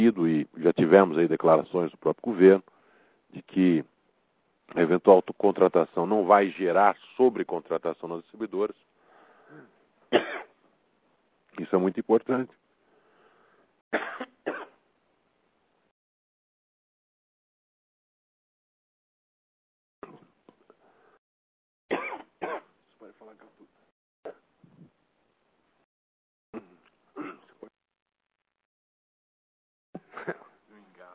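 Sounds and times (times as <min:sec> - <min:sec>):
speech: 0:00.0 - 0:02.7, 0:03.3 - 0:03.9, 0:04.7 - 0:08.9, 0:11.6 - 0:12.6, 0:13.9 - 0:14.6
man coughing and clearing his throat as if choking: 0:09.6 - 0:10.6, 0:13.9 - 0:14.8, 0:20.0 - 0:20.4, 0:21.9 - 0:22.7, 0:26.6 - 0:27.7, 0:30.0 - 0:30.6.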